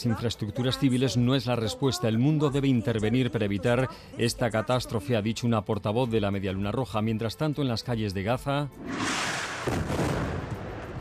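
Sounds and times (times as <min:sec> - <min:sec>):
speech: 0:00.0 - 0:10.0
bombs exploding: 0:08.8 - 0:10.9.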